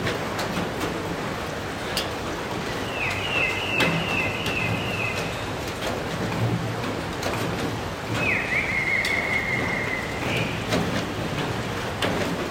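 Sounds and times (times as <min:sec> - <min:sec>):
late-night rain falling: 0:00.0 - 0:12.5.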